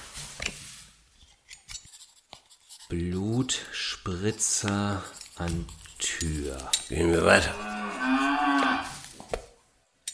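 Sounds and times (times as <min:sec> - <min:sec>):
pen scratching on paper: 0:01.7 - 0:08.0
speech: 0:02.9 - 0:09.0.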